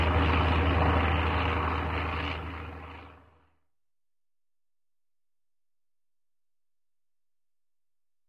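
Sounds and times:
distant helicopter flying and whirring: 0.0 - 3.5.

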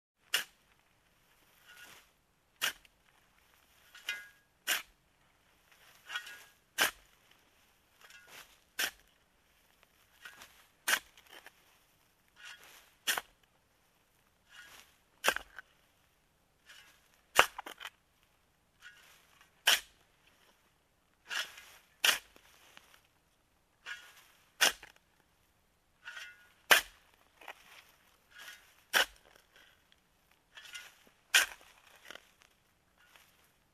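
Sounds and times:
trowel digging a hole: 0.2 - 0.8, 1.4 - 3.0, 3.6 - 5.0, 5.8 - 9.1, 9.8 - 13.5, 14.4 - 15.9, 16.6 - 18.0, 18.8 - 20.6, 21.2 - 23.0, 23.8 - 25.0, 26.0 - 33.5.

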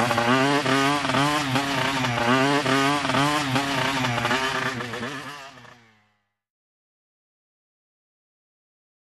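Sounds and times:
motorcycle engine: 0.0 - 6.4.

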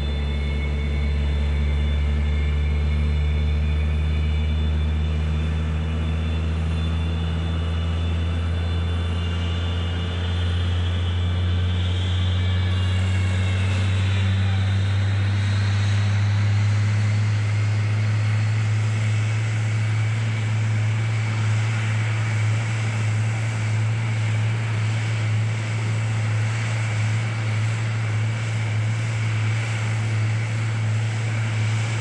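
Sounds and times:
airliner on standby propeller noise: 0.0 - 31.9.

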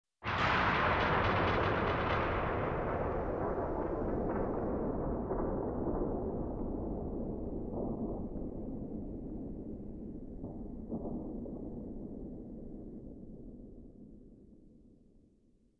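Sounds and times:
bomb explosion: 0.2 - 11.9.

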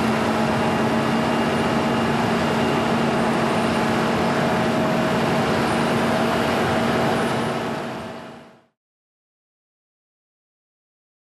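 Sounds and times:
construction noise: 0.0 - 8.8.

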